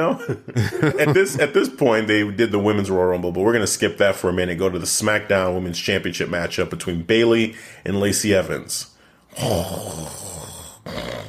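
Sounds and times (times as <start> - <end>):
laughter: 0.0 - 1.6
speech: 0.0 - 11.0
person imitating snoring: 9.3 - 11.2.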